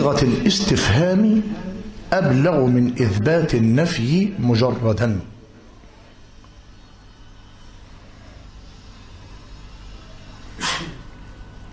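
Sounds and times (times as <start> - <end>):
speech: 0.0 - 5.3
sneeze: 10.6 - 11.2.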